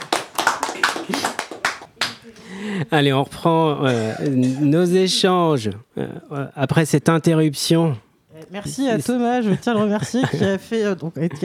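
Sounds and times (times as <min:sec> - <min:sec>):
scattered applause for a guest: 0:00.0 - 0:02.2
speech: 0:02.5 - 0:11.4.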